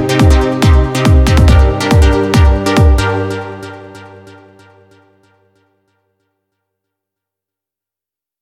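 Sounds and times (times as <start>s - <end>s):
techno music: 0.0s - 4.8s.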